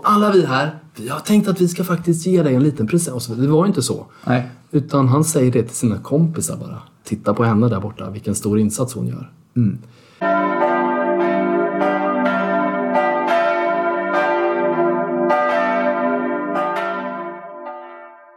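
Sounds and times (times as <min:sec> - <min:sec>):
speech: 0:00.0 - 0:10.4
bell ringing: 0:10.2 - 0:18.3.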